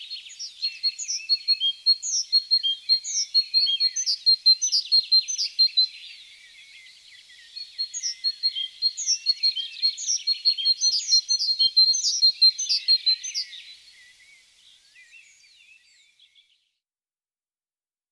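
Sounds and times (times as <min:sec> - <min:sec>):
great tit calls: 0:00.2 - 0:14.2.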